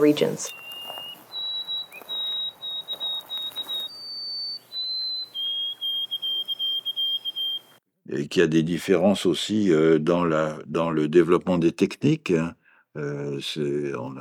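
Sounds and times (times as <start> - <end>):
speech: 0.0 - 0.6, 8.2 - 14.1
white-throated sparrow song: 0.0 - 7.8.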